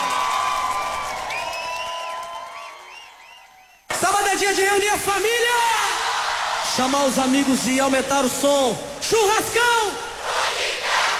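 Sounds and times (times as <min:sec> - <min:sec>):
large crowd cheering and shouting: 0:00.0 - 0:03.6, 0:05.2 - 0:11.1
high whoops: 0:00.0 - 0:03.7
speech: 0:04.4 - 0:05.8, 0:06.8 - 0:10.1.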